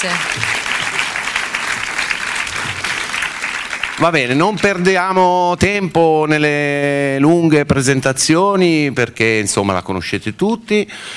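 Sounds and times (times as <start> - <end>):
speech: 0.0 - 0.7, 4.0 - 11.1
audience applause: 0.0 - 5.4.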